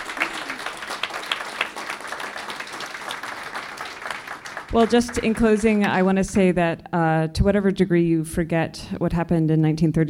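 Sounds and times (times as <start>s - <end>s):
audience round of applause: 0.0s - 6.0s
speech: 4.7s - 10.0s.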